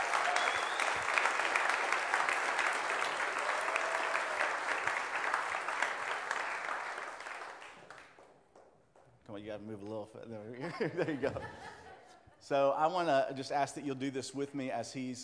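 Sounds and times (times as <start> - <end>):
audience applause: 0.0 - 8.2
speech: 9.6 - 11.8, 12.5 - 15.2
laughter: 10.6 - 12.5.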